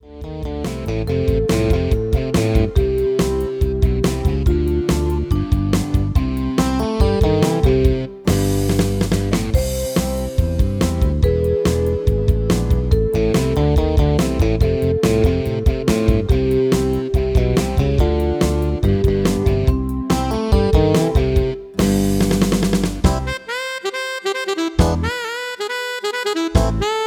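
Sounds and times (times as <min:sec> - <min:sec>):
MIDI music: 0:00.0 - 0:27.0.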